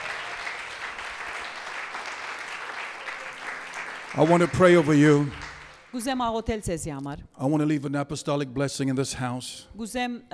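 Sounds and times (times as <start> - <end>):
audience clapping hands in praise: 0.0 - 6.2
speech: 4.2 - 10.3.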